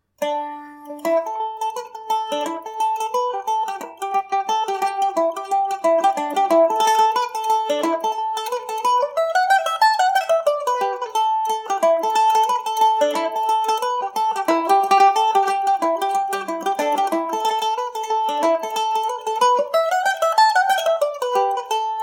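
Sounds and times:
Irish mandolin in A dorian: 0.0s - 22.0s.

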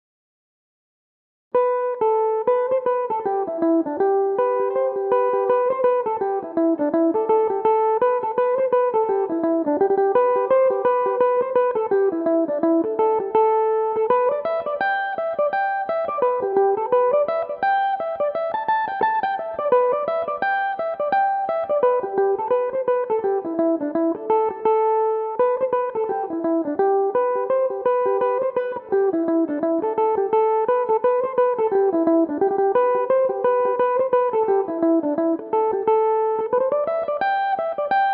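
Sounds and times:
Irish mandolin playing a reel in A dorian: 1.6s - 38.1s.

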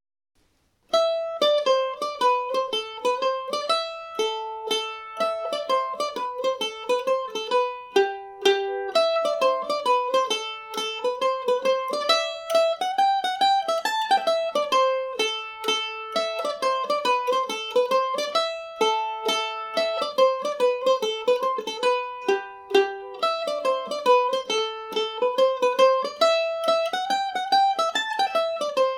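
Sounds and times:
Irish mandolin in A Dorian: 0.6s - 28.9s.

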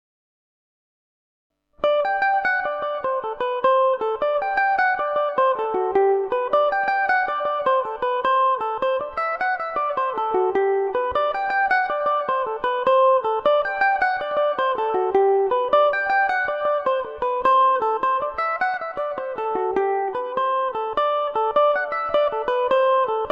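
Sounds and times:
Irish mandolin in G major: 1.8s - 23.2s.

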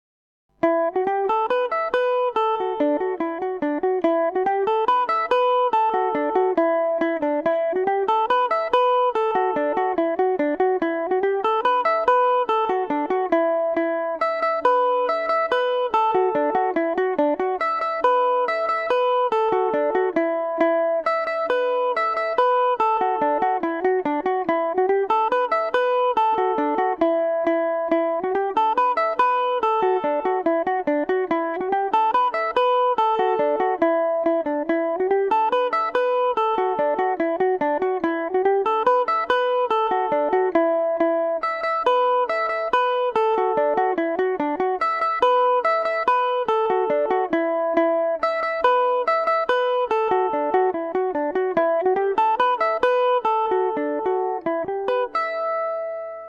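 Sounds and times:
Irish mandolin melody in E dorian: 0.5s - 56.2s.

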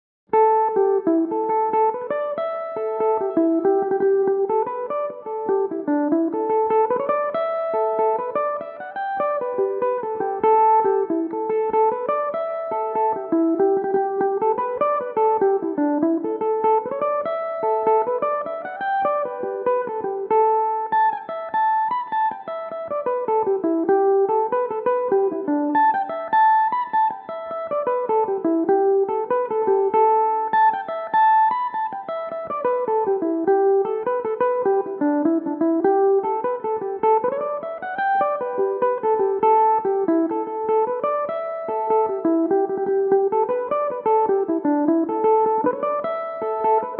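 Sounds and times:
Irish mandolin tunes: 0.3s - 46.9s.

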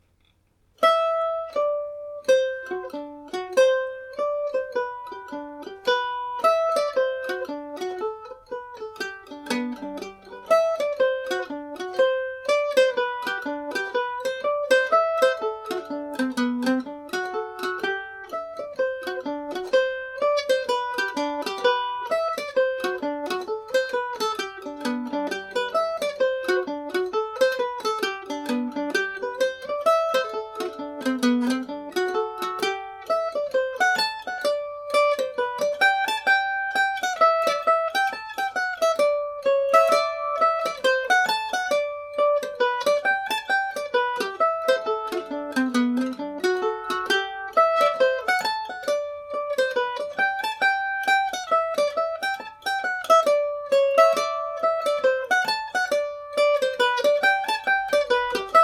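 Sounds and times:
hornpipe on mandolin: 0.8s - 58.6s.

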